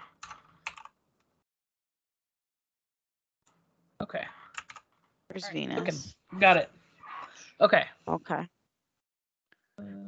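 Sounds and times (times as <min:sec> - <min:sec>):
computer keyboard clicks typing a date: 0:00.2 - 0:00.9, 0:04.6 - 0:04.8
speech: 0:04.0 - 0:04.4, 0:05.3 - 0:06.8, 0:07.6 - 0:08.6, 0:09.8 - 0:10.0.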